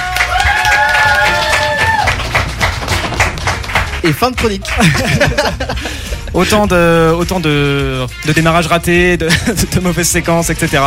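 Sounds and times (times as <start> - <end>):
applause: 0.0 - 5.6
speech: 4.0 - 10.8
laughter: 4.4 - 6.5, 9.2 - 9.7.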